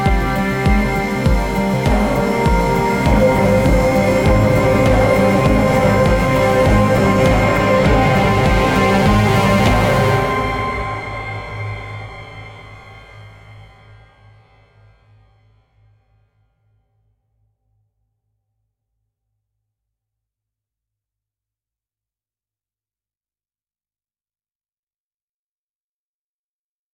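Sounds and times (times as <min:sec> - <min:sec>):
music loop at 100 BPM: 0:00.0 - 0:12.2.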